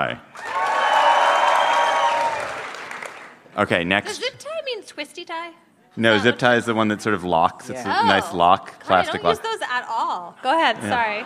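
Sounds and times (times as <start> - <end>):
speech: 0.0 - 0.5, 3.6 - 11.2
crowd cheering and whooping: 0.3 - 3.4
people clapping: 0.3 - 3.5.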